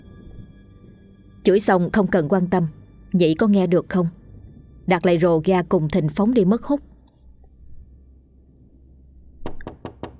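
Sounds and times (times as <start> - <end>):
speech: 1.5 - 4.2, 4.9 - 6.9
loud banging on a door: 9.4 - 10.1.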